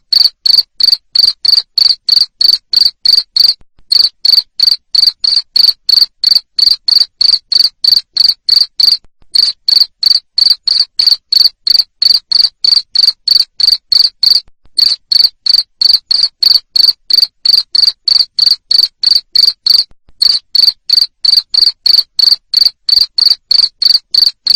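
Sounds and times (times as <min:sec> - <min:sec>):
cricket chirping: 0:00.1 - 0:24.5.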